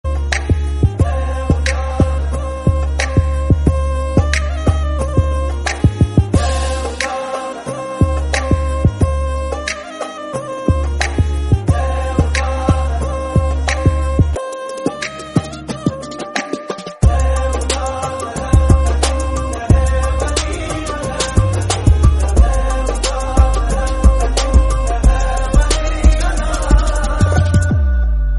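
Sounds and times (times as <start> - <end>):
background music ringtone: 0.1 - 28.3.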